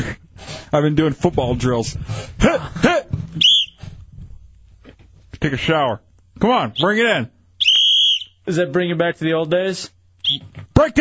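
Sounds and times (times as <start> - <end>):
speech: 0.7 - 2.8, 5.4 - 7.4, 8.5 - 10.9
whistle blast: 3.4 - 3.8, 7.6 - 8.4, 10.2 - 10.5.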